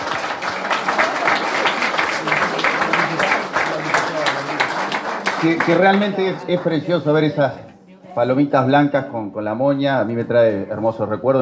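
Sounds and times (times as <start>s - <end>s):
audience applause: 0.0s - 7.0s
speech: 5.4s - 11.3s.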